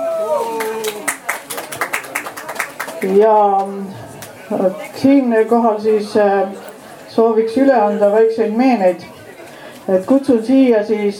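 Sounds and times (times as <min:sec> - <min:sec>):
audience applause: 0:00.2 - 0:03.2
speech: 0:03.0 - 0:09.2, 0:09.9 - 0:11.1.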